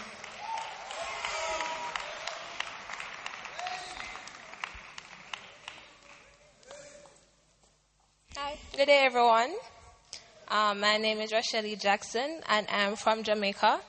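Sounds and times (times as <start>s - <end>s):
audience applause at a religious testimony gathering: 0.0s - 6.4s
speech: 8.8s - 9.7s, 10.5s - 13.8s.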